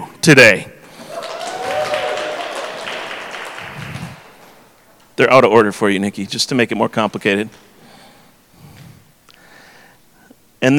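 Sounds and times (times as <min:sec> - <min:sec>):
speech: 0:00.2 - 0:00.8, 0:05.2 - 0:07.7, 0:10.6 - 0:10.7
audience applause: 0:01.0 - 0:04.8.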